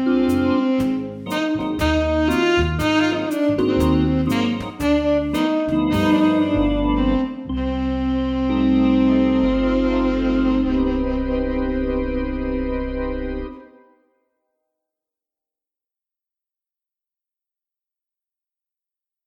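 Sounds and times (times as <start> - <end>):
slow foxtrot dance music: 0.0 - 13.6.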